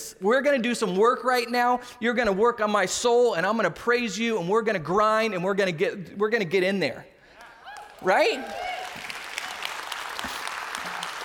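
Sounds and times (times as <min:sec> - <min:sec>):
speech: 0:00.2 - 0:07.1, 0:08.0 - 0:08.7
audience clapping: 0:07.3 - 0:11.2.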